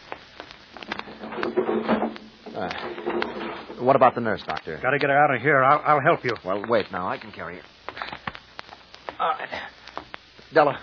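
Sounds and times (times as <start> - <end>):
light wooden knocks, radio drama sound effect: 0.9 - 3.7
speech: 2.6 - 7.8, 10.5 - 10.8.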